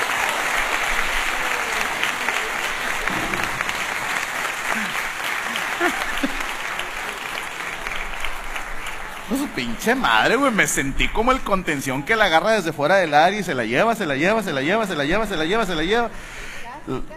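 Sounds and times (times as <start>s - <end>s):
audience applause: 0.0s - 13.9s
laughter: 1.2s - 7.8s
speech: 9.6s - 17.1s.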